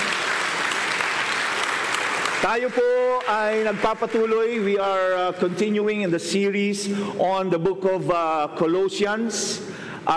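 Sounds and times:
audience applauding loudly: 0.0 - 5.8
speech: 2.4 - 10.1.

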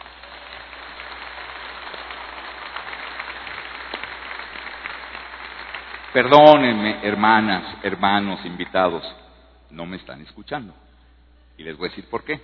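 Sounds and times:
church congregation clapping during a sermon: 0.0 - 8.9
speech: 6.2 - 10.8, 11.6 - 12.4.

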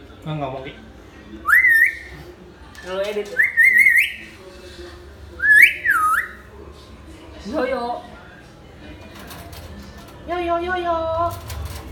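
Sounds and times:
speech: 0.2 - 2.2, 2.8 - 3.6, 7.4 - 8.1, 10.3 - 11.5
hill myna loud whistle: 1.5 - 2.1, 3.4 - 4.2, 5.4 - 6.4.

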